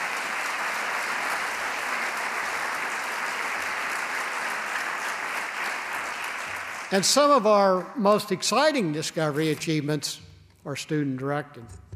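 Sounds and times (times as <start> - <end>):
audience applause: 0.0 - 7.4
speech: 6.9 - 11.8.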